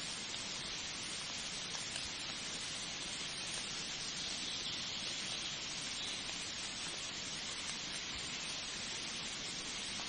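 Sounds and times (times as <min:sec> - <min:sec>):
warm light winter rain: 0:00.0 - 0:10.0.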